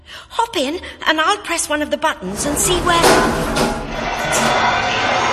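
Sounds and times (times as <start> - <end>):
speech: 0.4 - 3.8
lift hydraulics as the lift descends: 2.3 - 5.2.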